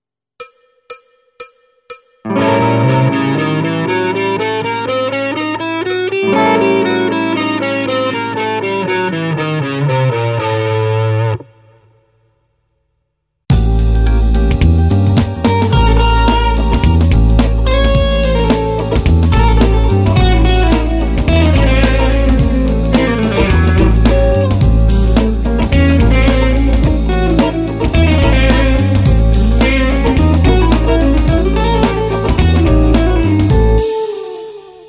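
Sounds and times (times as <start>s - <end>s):
half-whole diminished scale over a dominant seventh flat-nine chord: 2.3s - 10.4s, 13.5s - 33.9s.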